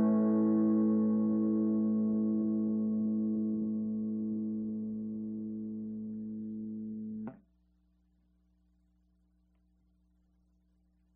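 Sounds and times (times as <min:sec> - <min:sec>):
amplifier close to wall: 0:00.8 - 0:07.4.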